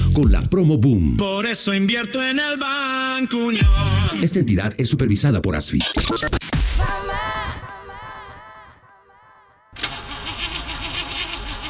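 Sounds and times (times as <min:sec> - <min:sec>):
speech: 0:00.2 - 0:07.3
car starter cranking, engine failing to start: 0:09.8 - 0:11.6.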